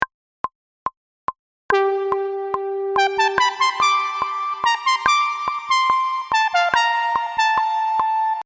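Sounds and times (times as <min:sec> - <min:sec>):
lead melody: 0:01.7 - 0:08.4.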